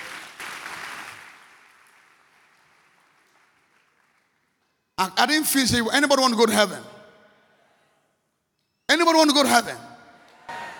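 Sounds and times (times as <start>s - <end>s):
crowd clapping: 0.0s - 4.7s
speech: 5.0s - 6.9s, 9.2s - 9.7s.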